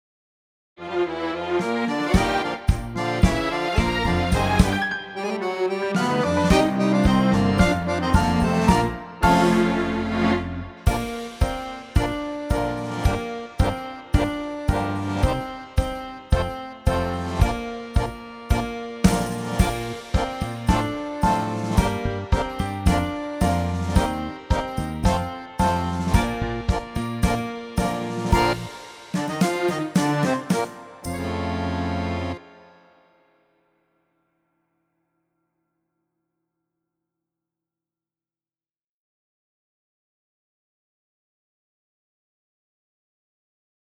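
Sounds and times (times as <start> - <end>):
Spanish tango music: 0.8 - 32.8
trumpet: 0.8 - 32.8
trombone: 2.0 - 15.6, 16.3 - 32.4.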